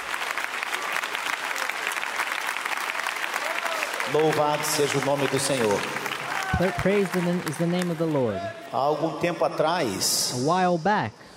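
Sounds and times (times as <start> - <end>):
audience applauding: 0.0 - 9.0
speech: 4.1 - 11.3.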